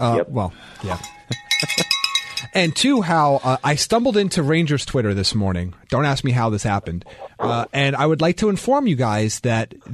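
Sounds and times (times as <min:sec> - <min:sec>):
speech: 0:00.0 - 0:01.9, 0:02.6 - 0:09.9
small bell ringing: 0:00.9 - 0:03.1.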